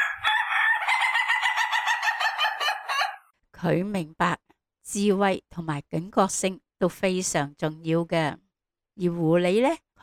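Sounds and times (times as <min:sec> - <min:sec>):
rooster crowing: 0:00.0 - 0:03.3
speech: 0:03.6 - 0:08.4, 0:09.0 - 0:10.0.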